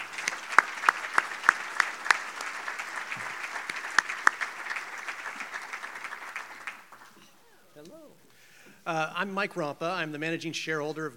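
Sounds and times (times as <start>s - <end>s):
audience round of applause: 0.0s - 8.2s
speech: 8.9s - 11.1s.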